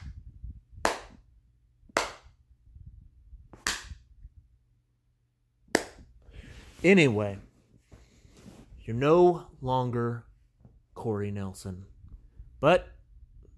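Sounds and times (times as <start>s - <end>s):
slow clap: 0.8s - 1.2s, 1.9s - 2.4s, 3.6s - 4.0s, 5.8s - 6.1s
speech: 6.8s - 7.5s, 8.9s - 10.3s, 11.0s - 11.9s, 12.6s - 12.9s.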